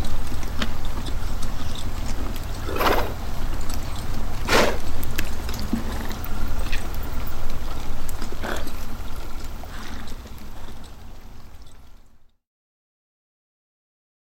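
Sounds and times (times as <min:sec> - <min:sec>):
historical infantry and cavalry standing idle: 0:00.0 - 0:12.2.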